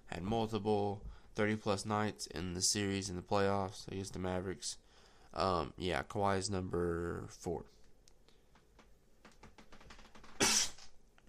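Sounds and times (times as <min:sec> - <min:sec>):
speech: 0:00.2 - 0:07.8
sneeze: 0:10.4 - 0:10.9.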